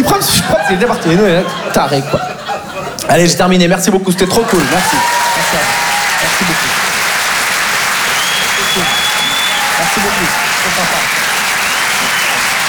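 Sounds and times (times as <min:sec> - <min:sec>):
laughter: 0:00.2 - 0:12.6
speech: 0:00.7 - 0:02.4, 0:03.1 - 0:06.0
comedy club audience applause at the end of a comedy set: 0:04.2 - 0:12.6.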